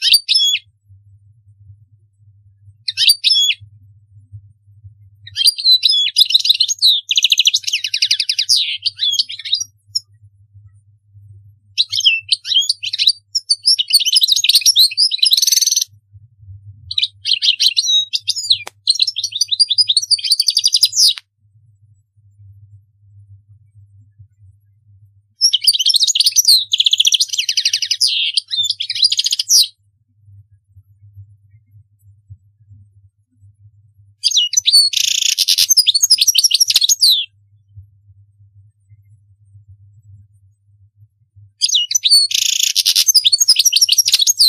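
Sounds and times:
faint low hum: 0:00.8 - 0:05.6, 0:15.0 - 0:20.1, 0:21.0 - 0:25.4, 0:29.8 - 0:34.3, 0:37.4 - 0:41.6
European goldfinch song: 0:02.8 - 0:03.7, 0:05.2 - 0:10.2, 0:11.7 - 0:16.0, 0:16.9 - 0:21.2, 0:25.4 - 0:29.8, 0:34.2 - 0:37.4, 0:41.6 - 0:44.4.

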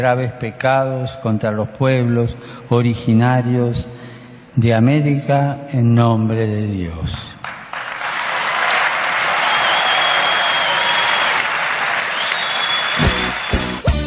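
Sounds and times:
speech: 0:00.0 - 0:07.3
audience applauding in ovation: 0:07.4 - 0:13.9.

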